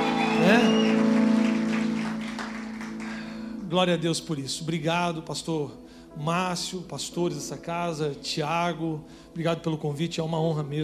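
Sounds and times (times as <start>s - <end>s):
crowd applauding: 0.0s - 3.6s
speech: 3.7s - 10.8s.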